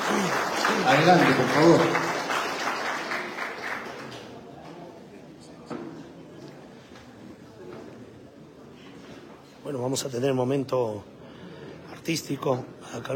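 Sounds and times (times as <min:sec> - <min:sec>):
audience applause: 0:00.0 - 0:04.5
speech: 0:00.2 - 0:02.1, 0:10.0 - 0:11.2, 0:12.0 - 0:13.1.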